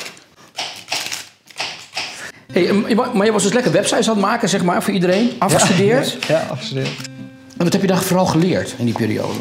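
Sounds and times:
knife chopping onions and radishes on a board: 0:00.4 - 0:02.3
speech: 0:02.5 - 0:09.4
laughter: 0:05.5 - 0:06.3.

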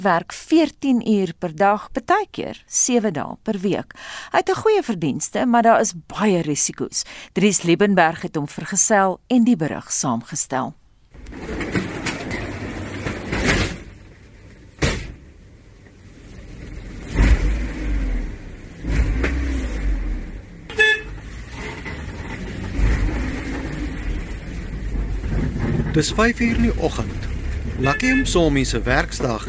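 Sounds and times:
speech: 0:00.0 - 0:11.8, 0:26.0 - 0:29.4
minibus taxi engine driving through narrow township streets of Kato Manor: 0:11.1 - 0:29.4
minibus taxi horn toot: 0:20.7 - 0:21.4, 0:27.8 - 0:28.5.

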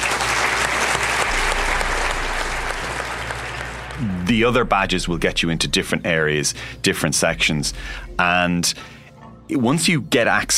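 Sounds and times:
audience applause: 0:00.0 - 0:04.6
faint low hum: 0:01.2 - 0:08.0
speech: 0:04.0 - 0:10.5.

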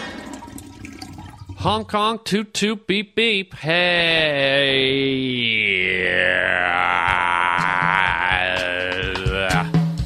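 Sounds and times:
speech: 0:01.6 - 0:07.0
person doing throat exercises: 0:03.6 - 0:10.0.

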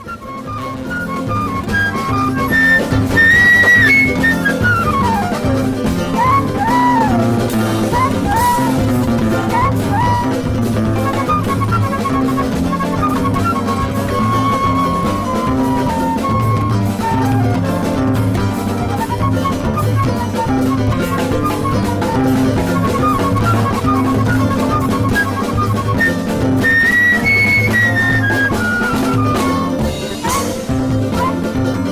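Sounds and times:
lively choro music with flute melody, strummed strings and bass: 0:00.0 - 0:31.9.

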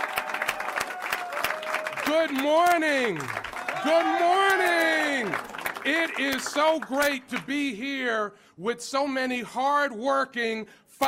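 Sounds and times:
audience applause: 0:00.0 - 0:07.5
speech: 0:02.1 - 0:11.0.

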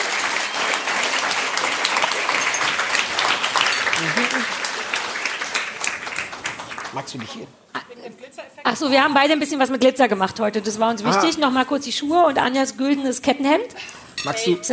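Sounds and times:
audience applause: 0:00.0 - 0:07.5
speech: 0:07.0 - 0:14.7.

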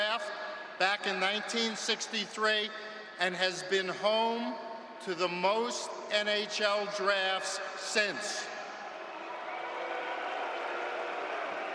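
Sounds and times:
speech: 0:00.8 - 0:08.6
crowd booing: 0:08.7 - 0:11.7.

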